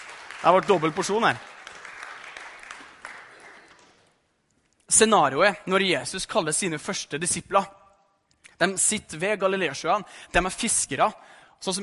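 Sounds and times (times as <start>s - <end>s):
church congregation applauding: 0.0s - 4.2s
speech: 0.4s - 1.5s, 4.9s - 7.8s, 8.6s - 11.8s.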